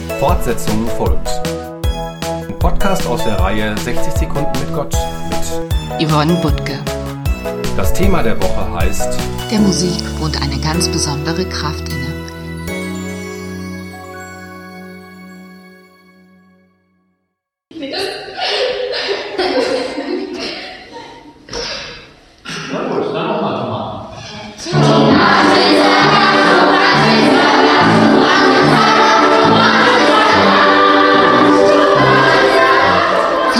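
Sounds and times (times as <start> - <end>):
speech: 0.2 - 1.5, 2.6 - 7.0, 7.8 - 12.0
laughter: 17.8 - 21.6, 22.7 - 24.1
children's choir singing: 24.6 - 33.5.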